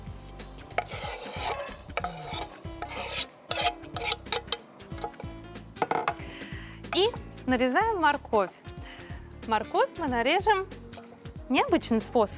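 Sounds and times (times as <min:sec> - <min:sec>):
chopped onion scraped off a board into a frying pan: 0:00.0 - 0:06.2
utensil clinking against metal: 0:00.8 - 0:06.2
speech: 0:07.5 - 0:08.6, 0:09.5 - 0:10.8, 0:11.5 - 0:12.3.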